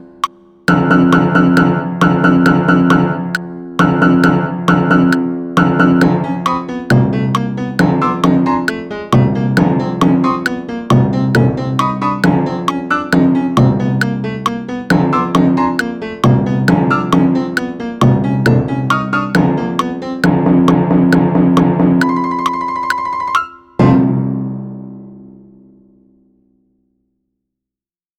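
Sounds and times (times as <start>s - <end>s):
piano: 0.0s - 25.9s
timpani: 0.7s - 24.5s.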